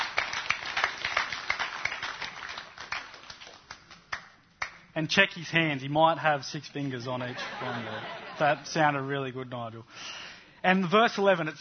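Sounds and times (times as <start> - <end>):
audience applause: 0.0 - 4.2
speech: 5.0 - 11.6
laughter: 7.2 - 8.9.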